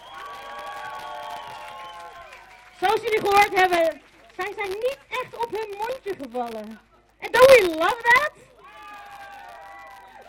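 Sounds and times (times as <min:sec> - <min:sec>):
audience cheering: 0:00.0 - 0:03.4, 0:08.6 - 0:10.2
loud audience applause: 0:00.0 - 0:05.2, 0:08.5 - 0:10.2
speech: 0:02.8 - 0:08.5.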